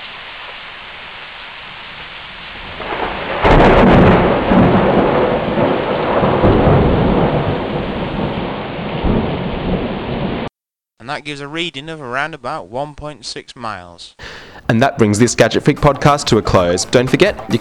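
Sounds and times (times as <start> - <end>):
steady heavy rain: 0.0 - 10.5
thunderclap from a thunderstorm: 1.7 - 10.5
speech: 11.1 - 17.5.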